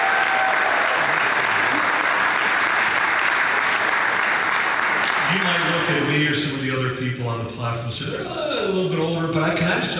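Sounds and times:
sustained applause from a large audience: 0.0s - 6.4s
speech: 6.3s - 9.9s.

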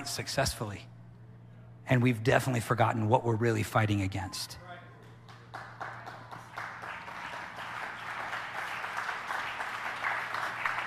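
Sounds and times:
speech: 0.0s - 0.9s, 1.9s - 4.6s
audience clapping: 5.0s - 10.8s.

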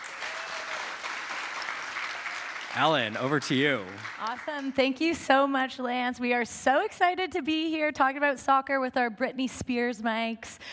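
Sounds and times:
audience applause at a sports media event: 0.0s - 5.0s
speech: 2.8s - 10.7s.

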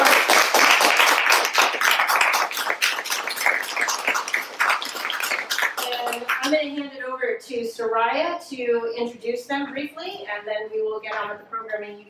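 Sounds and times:
audience applause: 0.0s - 6.5s
speech: 7.8s - 12.0s.

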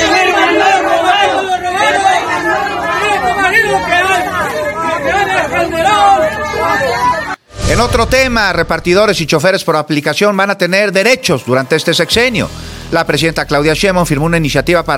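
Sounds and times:
crowd shouting and chanting outside courthouse: 0.0s - 8.1s
speech: 7.8s - 14.9s.

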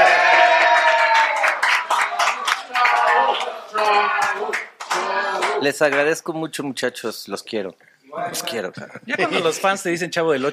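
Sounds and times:
people shouting and whooping: 0.0s - 5.6s
audience clapping: 0.0s - 6.1s
speech: 5.6s - 10.5s.

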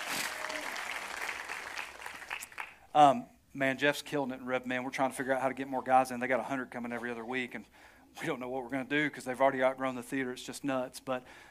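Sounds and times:
audience applause: 0.0s - 2.8s
speech: 2.9s - 11.4s.

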